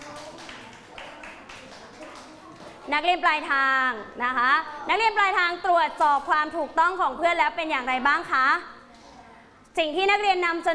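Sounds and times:
students clapping in a classroom: 0:00.0 - 0:02.7
speech: 0:02.9 - 0:08.7, 0:09.8 - 0:10.7.

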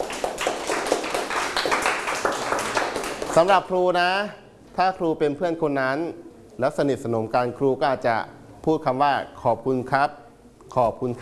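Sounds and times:
classroom clapping for a student: 0:00.0 - 0:03.6
speech: 0:03.4 - 0:11.1.

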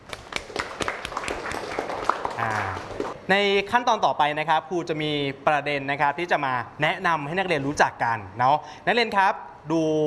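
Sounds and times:
students clapping: 0:00.0 - 0:03.2
speech: 0:02.4 - 0:10.0.

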